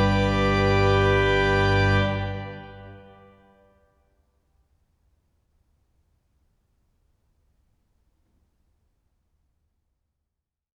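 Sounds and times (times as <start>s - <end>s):
organ fanfare: 0.0s - 3.7s.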